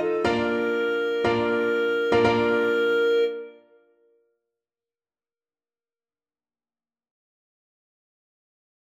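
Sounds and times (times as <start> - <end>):
clarinet: 0.0 - 4.0.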